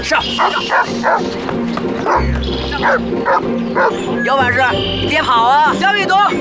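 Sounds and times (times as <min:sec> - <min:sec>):
speech: 0:00.0 - 0:06.3
dog barking: 0:00.4 - 0:01.3, 0:02.1 - 0:04.0.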